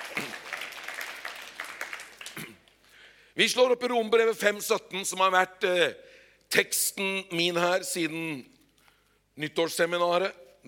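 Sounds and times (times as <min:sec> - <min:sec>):
audience applause: 0:00.0 - 0:02.5
speech: 0:03.4 - 0:08.6, 0:09.4 - 0:10.6.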